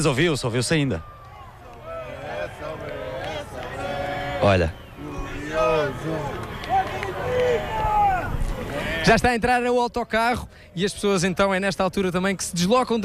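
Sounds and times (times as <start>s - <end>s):
speech: 0.0s - 1.2s, 4.4s - 4.8s, 5.7s - 6.4s, 9.0s - 13.0s
football fans chanting team name: 1.3s - 9.0s.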